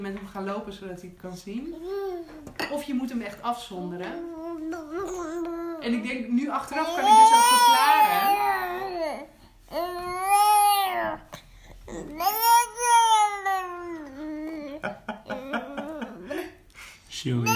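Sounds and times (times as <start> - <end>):
speech: 0.0 - 10.2, 17.2 - 17.5
baby babbling: 1.7 - 2.5, 4.1 - 5.9, 6.7 - 16.4.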